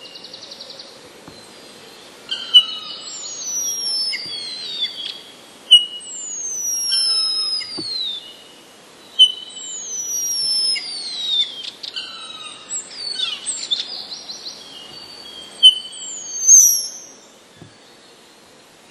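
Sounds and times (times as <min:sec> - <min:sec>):
starlings giving descending whistles: 0:02.3 - 0:08.2, 0:09.2 - 0:14.2, 0:15.0 - 0:17.2.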